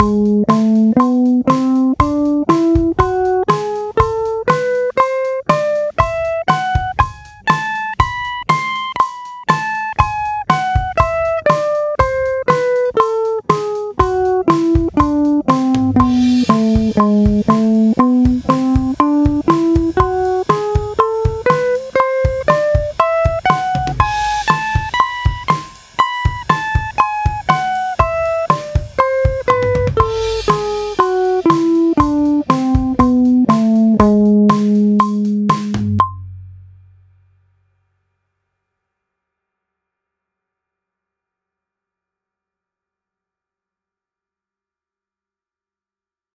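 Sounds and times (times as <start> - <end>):
guitar playing A melodic minor scale: 0.0 - 36.8.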